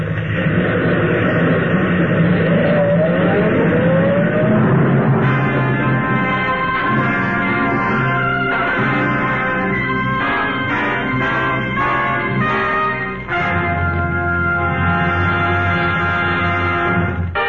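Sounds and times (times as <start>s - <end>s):
car low on gas driving off, radio drama sound effect: 0.0s - 17.3s.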